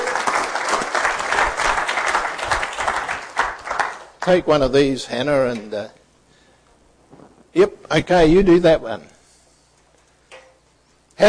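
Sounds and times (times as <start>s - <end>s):
audience clapping: 0.0s - 4.7s
speech: 4.2s - 6.0s, 7.6s - 9.1s.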